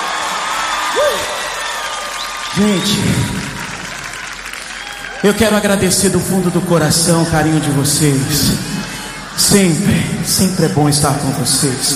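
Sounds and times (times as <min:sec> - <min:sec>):
audience clapping: 0:00.0 - 0:06.5
speech: 0:02.5 - 0:03.4, 0:05.2 - 0:11.9.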